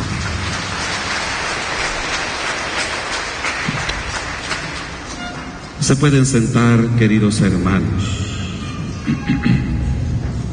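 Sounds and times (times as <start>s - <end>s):
audience clapping: 0.0s - 5.8s
speech: 5.9s - 8.4s, 9.1s - 9.8s.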